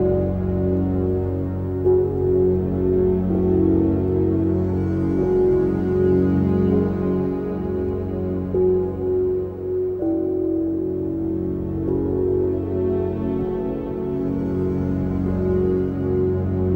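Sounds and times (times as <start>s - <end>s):
acoustic drone: 0.0s - 16.7s.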